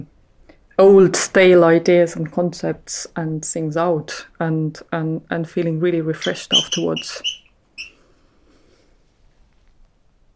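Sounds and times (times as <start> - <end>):
faint low hiss: 0.0 - 6.0, 7.4 - 10.3
speech: 0.8 - 7.4
bird chirp: 6.2 - 8.0.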